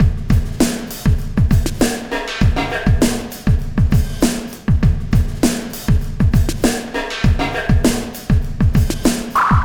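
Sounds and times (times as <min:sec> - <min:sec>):
processed drumkit beat: 0:00.0 - 0:09.6.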